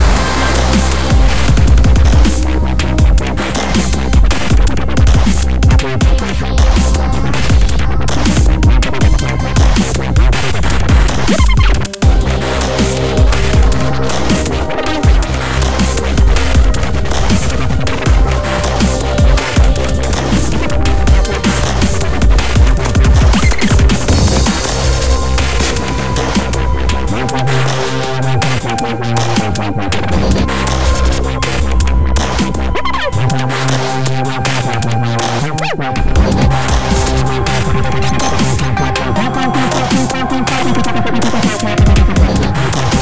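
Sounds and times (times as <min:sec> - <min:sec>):
music: 0:00.0 - 0:42.9.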